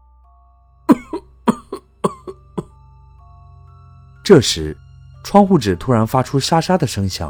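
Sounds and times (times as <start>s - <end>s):
violent coughing: 0.9s - 2.7s
speech: 4.3s - 7.2s.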